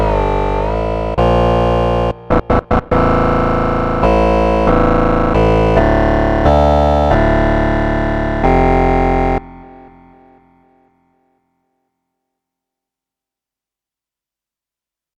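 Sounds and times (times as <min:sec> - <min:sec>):
FM synth attack bass: 0:00.0 - 0:09.8.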